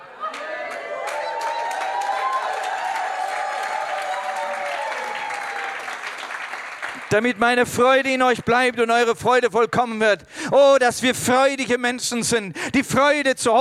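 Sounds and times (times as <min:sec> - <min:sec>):
audience applause: 0:00.0 - 0:07.6
speech: 0:07.1 - 0:13.5.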